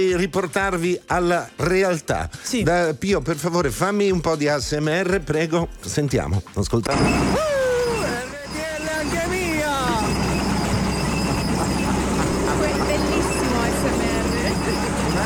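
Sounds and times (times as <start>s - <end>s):
speech: 0.0s - 7.6s
tracked tractor engine and treads: 6.9s - 15.2s.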